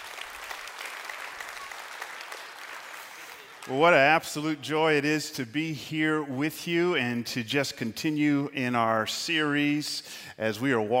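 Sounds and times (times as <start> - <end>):
audience hand clapping: 0.0 - 4.2
speech: 3.6 - 10.9.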